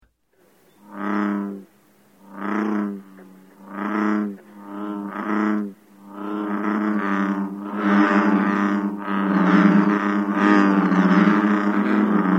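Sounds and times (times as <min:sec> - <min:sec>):
American bullfrog calling: 0:00.4 - 0:12.3.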